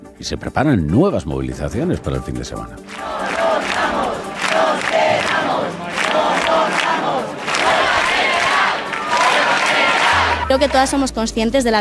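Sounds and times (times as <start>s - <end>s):
speech: 0.2s - 3.2s, 10.5s - 11.7s
protest crowd chanting: 2.9s - 10.8s.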